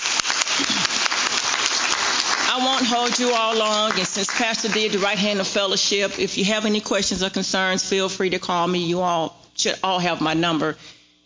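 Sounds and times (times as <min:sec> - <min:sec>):
church audience applause for new members: 0:00.0 - 0:06.0
speech: 0:02.6 - 0:11.2.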